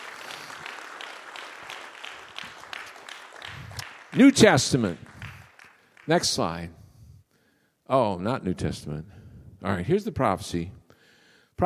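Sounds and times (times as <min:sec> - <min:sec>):
hand clap offering of praise: 0:00.0 - 0:06.4
speech: 0:04.1 - 0:05.0, 0:06.1 - 0:06.8, 0:07.9 - 0:10.8.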